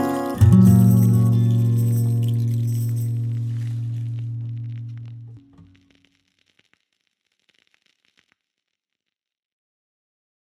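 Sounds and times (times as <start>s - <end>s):
lullaby music: 0.0s - 3.7s.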